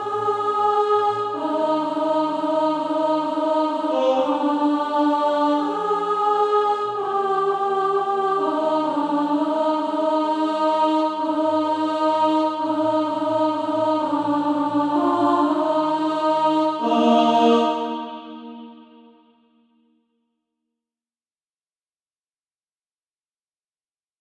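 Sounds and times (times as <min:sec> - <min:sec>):
alto voice singing practice music: 0:00.0 - 0:19.2.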